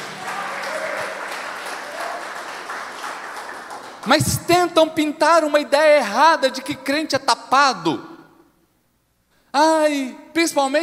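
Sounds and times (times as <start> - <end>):
audience applause: 0.0 - 4.2
speech: 4.0 - 8.1, 9.5 - 10.8.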